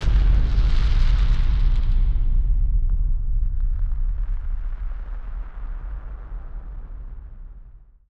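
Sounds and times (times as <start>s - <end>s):
firework sound effect: 0.0s - 7.9s.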